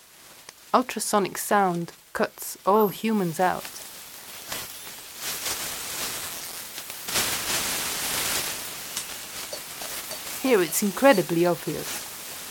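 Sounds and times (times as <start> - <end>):
speech: 0.7 - 3.8, 10.5 - 12.1
running water: 7.2 - 12.2.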